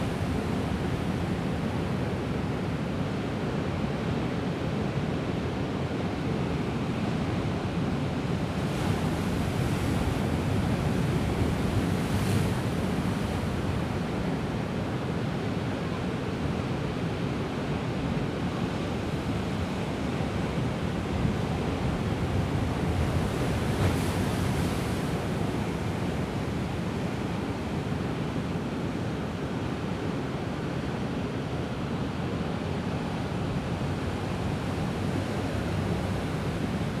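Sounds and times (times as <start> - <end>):
strong waves on the ocean in Casablanca Morocco: 0.0 - 36.9.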